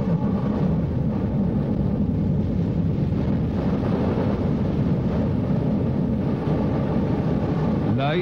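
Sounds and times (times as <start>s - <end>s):
storm: 0.0s - 8.2s
tidal wave: 0.0s - 8.2s
volcano erupting: 0.0s - 8.2s.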